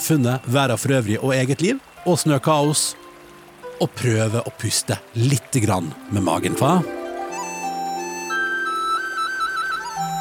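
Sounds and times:
speech: 0:00.1 - 0:03.0, 0:03.8 - 0:07.0
soft flute melody: 0:06.0 - 0:10.1.

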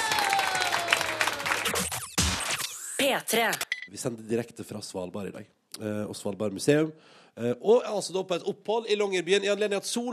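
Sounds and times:
audience applause: 0:00.0 - 0:02.2
speech: 0:03.0 - 0:10.1.

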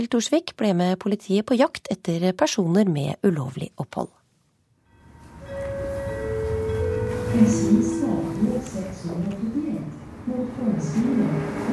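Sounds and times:
speech: 0:00.0 - 0:04.2, 0:07.3 - 0:11.7
sustained train tones: 0:04.8 - 0:11.1
rumble of passenger train bound for Oslo at Arvika station in Sweden: 0:05.1 - 0:11.7.

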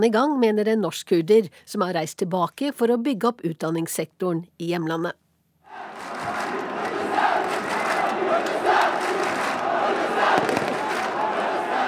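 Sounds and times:
speech: 0:00.0 - 0:05.9
huge stadium crowd roaring: 0:05.7 - 0:11.8.

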